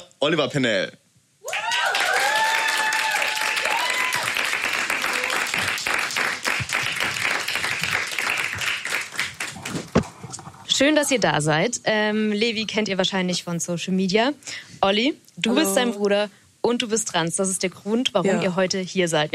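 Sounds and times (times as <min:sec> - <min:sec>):
speech: 0:00.2 - 0:01.0, 0:10.8 - 0:19.3
applause: 0:01.5 - 0:10.2.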